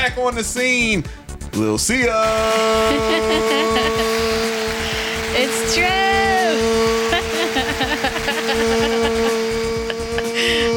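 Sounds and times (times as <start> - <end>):
speech: 0.0 - 4.6, 5.4 - 6.9
laughter: 2.3 - 5.3, 6.9 - 10.7
voice with echo effect: 4.9 - 9.0.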